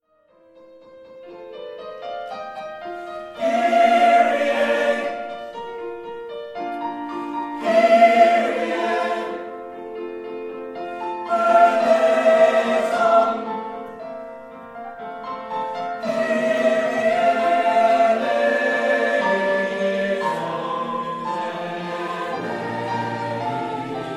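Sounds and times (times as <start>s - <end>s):
choral mass movement: 3.0s - 6.0s, 6.7s - 10.0s, 10.8s - 14.8s, 15.5s - 24.1s.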